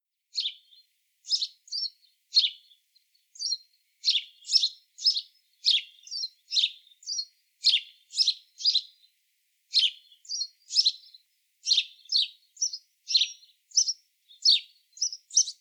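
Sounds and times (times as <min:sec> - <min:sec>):
house sparrow chirping: 0:00.3 - 0:09.1, 0:09.7 - 0:15.5.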